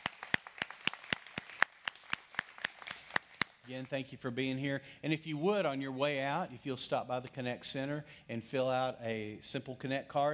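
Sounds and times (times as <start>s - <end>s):
audience clapping hands to welcome guests: 0.0s - 4.0s
speech: 3.7s - 10.3s.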